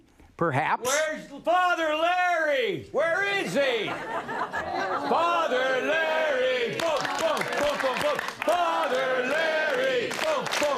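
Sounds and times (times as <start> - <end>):
speech: 0.4 - 10.7
laughter: 3.5 - 6.0, 6.8 - 8.4
crowd cheering and shouting rowdy chanting: 4.8 - 10.7.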